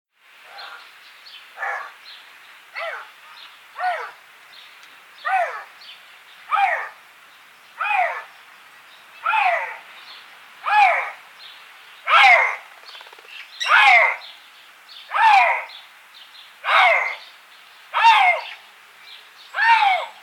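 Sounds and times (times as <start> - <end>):
Eurasian lynx harsh arched yowls in a call series: 5.2 - 5.7, 6.5 - 7.0, 7.8 - 8.3, 9.2 - 9.8, 10.6 - 11.2, 12.1 - 12.6, 13.6 - 14.2, 15.1 - 15.7, 16.6 - 17.2, 18.0 - 18.6, 19.6 - 20.2.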